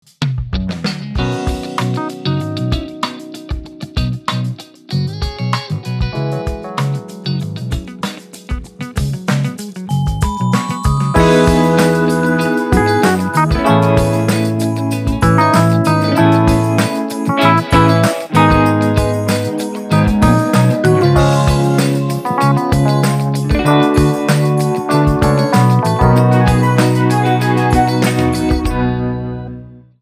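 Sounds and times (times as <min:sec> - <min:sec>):
instrumental music: 0:00.7 - 0:30.0.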